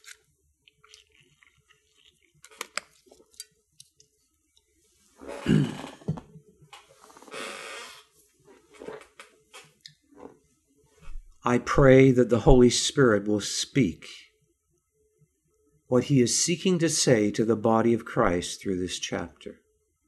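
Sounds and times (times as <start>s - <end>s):
person drinking water: 0.7s - 3.3s, 5.2s - 6.3s
speech: 11.5s - 14.2s, 15.9s - 19.6s.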